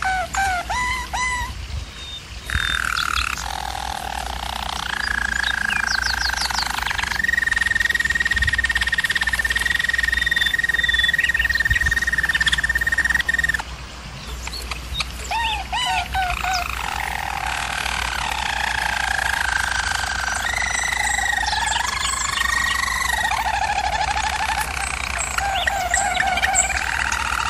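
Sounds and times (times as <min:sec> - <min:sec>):
German Roller canary rolling song: 0:00.0 - 0:27.4
low hum: 0:03.3 - 0:27.4.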